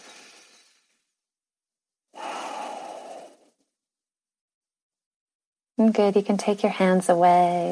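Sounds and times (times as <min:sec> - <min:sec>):
person breathing deeply in and out: 0:02.2 - 0:03.6
speech: 0:05.8 - 0:07.6.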